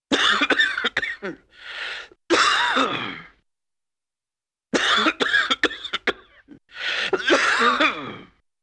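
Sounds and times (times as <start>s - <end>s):
man coughing wheezily: 0.1s - 1.4s, 2.3s - 3.3s, 4.8s - 8.4s.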